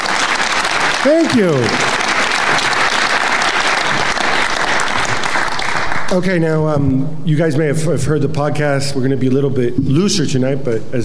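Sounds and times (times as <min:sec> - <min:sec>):
audience applause: 0:00.0 - 0:06.1
speech: 0:01.0 - 0:01.9, 0:06.1 - 0:11.0.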